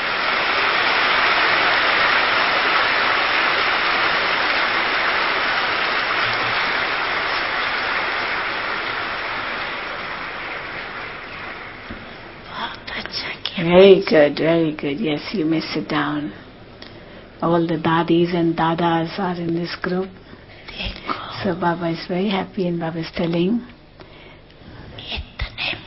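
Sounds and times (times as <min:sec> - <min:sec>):
audience clapping loudly: 0:00.0 - 0:12.4
speech: 0:13.7 - 0:16.4, 0:17.4 - 0:23.7.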